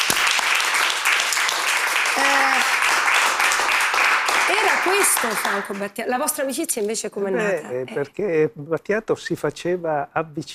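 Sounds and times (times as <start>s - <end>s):
audience applause: 0.0s - 5.9s
speech: 4.8s - 10.5s.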